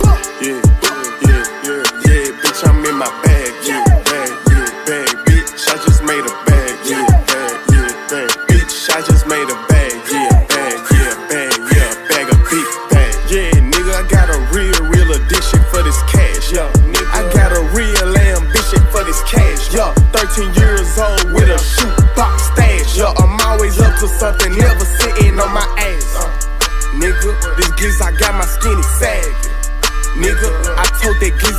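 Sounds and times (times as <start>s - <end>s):
rapping in English: 0.0s - 31.5s.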